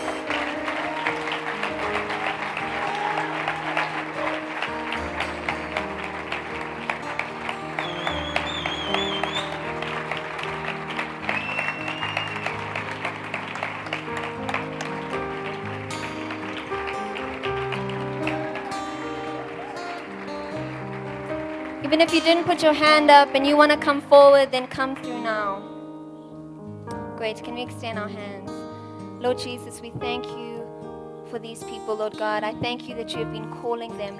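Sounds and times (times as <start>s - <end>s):
crowd applause: 0.0s - 23.8s
sustained music chords: 0.0s - 34.1s
high whistles: 7.7s - 9.8s, 11.2s - 12.8s
speech: 22.0s - 25.7s, 27.2s - 28.6s, 29.2s - 30.4s, 31.3s - 34.1s.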